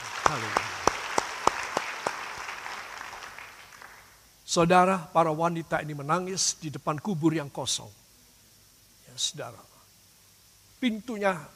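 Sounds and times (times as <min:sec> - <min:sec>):
audience applause: 0:00.0 - 0:04.2
speech: 0:00.3 - 0:00.6, 0:04.5 - 0:08.0, 0:09.2 - 0:09.7, 0:10.8 - 0:11.5.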